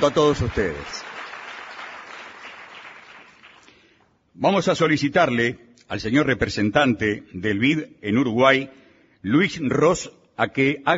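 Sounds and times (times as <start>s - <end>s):
speech: 0.0s - 1.1s, 4.4s - 10.9s
audience applause: 0.0s - 3.7s.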